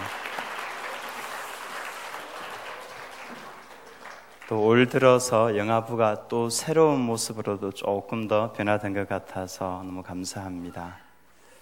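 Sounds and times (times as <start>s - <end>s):
audience applause: 0.0s - 4.8s
speech: 4.5s - 11.0s.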